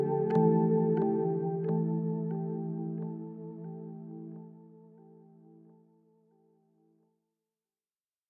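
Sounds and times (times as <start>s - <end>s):
synth with tape delay: 0.0s - 5.8s.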